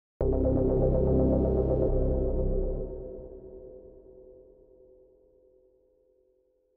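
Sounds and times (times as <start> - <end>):
bass stab: 0.2 - 3.7.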